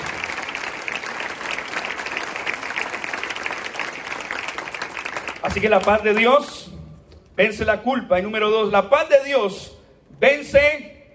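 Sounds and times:
audience applauding loudly: 0.0 - 6.7
speech: 5.4 - 6.7, 7.4 - 10.9.

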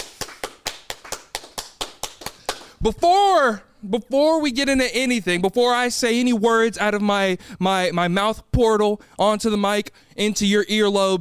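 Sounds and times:
single person clapping: 0.0 - 2.8
speech: 2.8 - 11.1.

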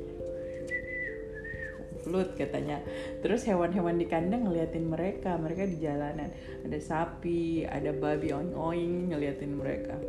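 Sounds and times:
person whistling in imitation of a flute: 0.2 - 2.1
speech: 2.0 - 10.0.

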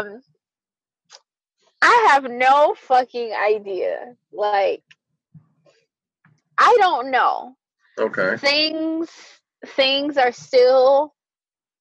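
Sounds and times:
speech: 0.0 - 0.3, 1.8 - 5.4, 6.6 - 11.2
person clearing throat: 8.0 - 8.4.

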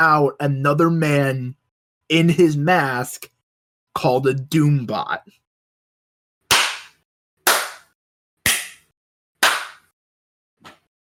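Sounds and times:
speech: 0.0 - 3.3, 4.0 - 5.4
hand clapping: 6.5 - 9.9.

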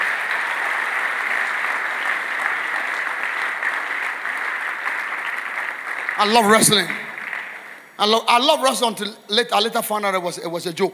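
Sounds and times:
audience clapping: 0.0 - 8.0
speech: 6.2 - 7.0, 8.0 - 10.9.

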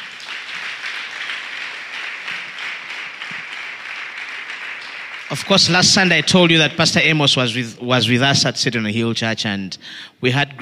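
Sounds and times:
applause: 0.0 - 7.0
speech: 5.3 - 10.6.

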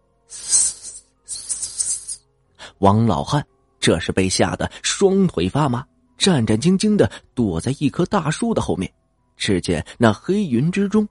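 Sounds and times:
giant snake hissing: 0.3 - 2.2
speech: 2.8 - 11.0.

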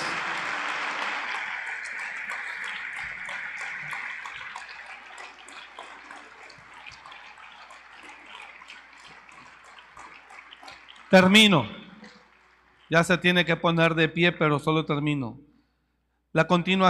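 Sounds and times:
loud applause: 0.0 - 13.1
speech: 11.1 - 11.8, 12.9 - 15.5, 16.4 - 16.8.

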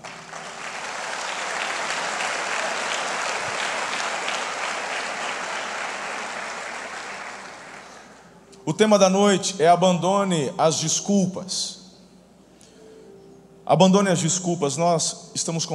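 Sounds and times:
audience applauding: 0.0 - 8.2
speech: 8.7 - 11.8, 13.7 - 15.7.

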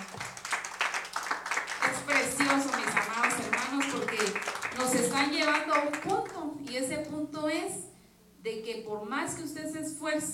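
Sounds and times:
audience applause: 0.0 - 6.4
speech: 4.9 - 10.3.

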